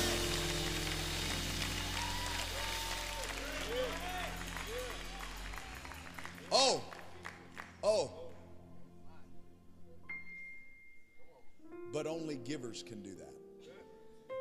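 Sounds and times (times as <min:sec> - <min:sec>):
audience praising: 0:00.0 - 0:07.4
audience clapping: 0:00.0 - 0:08.4
speech: 0:12.5 - 0:13.4.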